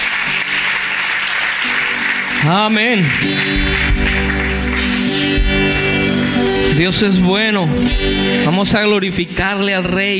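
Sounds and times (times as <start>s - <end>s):
church congregation clapping at a Spanish-language service: 0.0s - 6.9s
speech: 2.4s - 4.4s, 5.4s - 10.1s.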